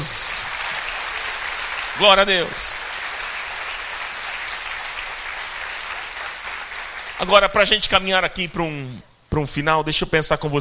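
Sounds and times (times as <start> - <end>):
audience applauding: 0.0 - 7.7
speech: 2.0 - 2.8, 7.2 - 10.5.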